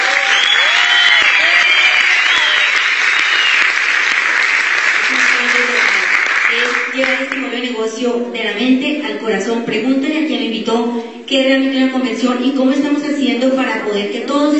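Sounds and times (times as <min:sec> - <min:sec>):
audience applause: 0:00.0 - 0:07.4
speech: 0:07.8 - 0:14.5.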